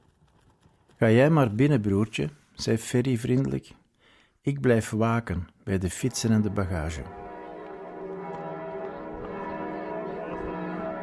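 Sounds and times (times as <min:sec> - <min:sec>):
speech: 0:01.0 - 0:03.8, 0:04.4 - 0:07.2
church bell ringing: 0:06.0 - 0:11.0.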